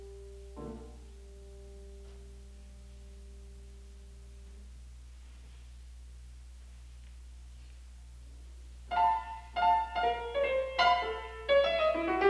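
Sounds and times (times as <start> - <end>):
six small piano pieces: 0.0 - 4.6, 8.9 - 12.2.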